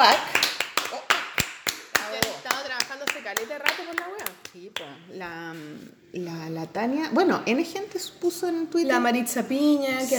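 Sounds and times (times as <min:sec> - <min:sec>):
brief hand clapping: 0:00.0 - 0:05.7
speech: 0:04.6 - 0:10.1.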